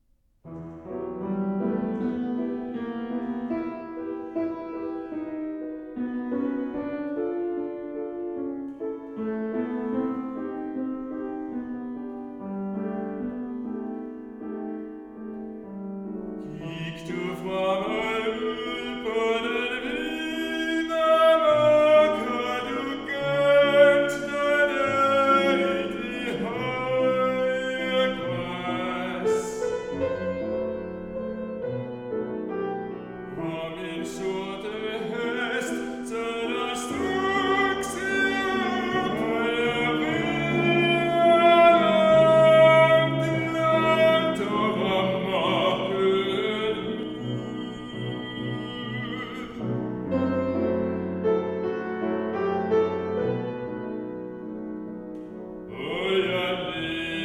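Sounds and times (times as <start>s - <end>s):
slow lyrical music: 0.4s - 57.2s.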